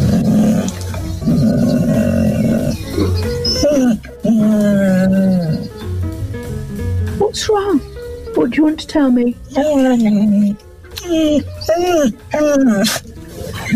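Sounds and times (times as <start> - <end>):
failed guide dog vocalizing, talking to owner: 0.0 - 5.9, 7.9 - 8.5, 9.3 - 13.7
speech: 7.3 - 13.1.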